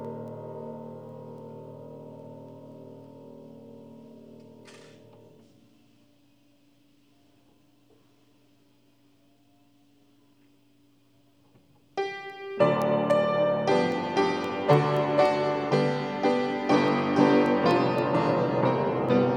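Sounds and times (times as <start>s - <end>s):
high piano: 0.0s - 5.6s, 12.0s - 19.3s.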